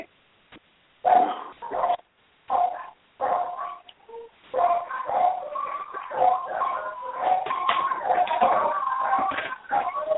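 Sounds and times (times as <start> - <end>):
dogs barking: 1.0 - 3.9, 4.5 - 10.1
dogs howling and whining: 2.6 - 10.1.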